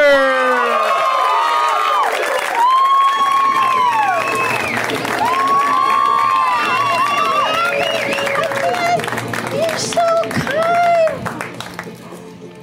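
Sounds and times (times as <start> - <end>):
high whoops and shouts: 0.0 - 11.2
crowd clapping welcoming a comedian: 0.3 - 12.3.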